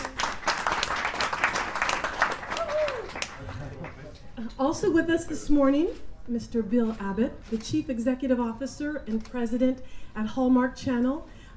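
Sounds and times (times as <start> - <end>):
audience applause welcoming actors to the stage: 0.0 - 4.1
speech: 4.6 - 11.4.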